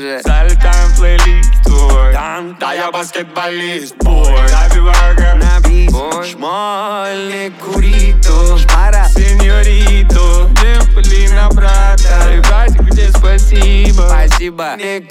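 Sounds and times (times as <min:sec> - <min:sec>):
low bass tone at 41 to 46 Hz: 0:00.3 - 0:02.2, 0:04.0 - 0:06.0, 0:07.8 - 0:14.4.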